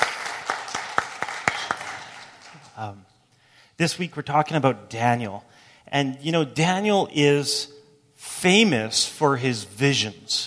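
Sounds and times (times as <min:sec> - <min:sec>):
hands clapping for a church worship team: 0:00.0 - 0:02.9
speech: 0:02.8 - 0:03.1, 0:03.8 - 0:10.4.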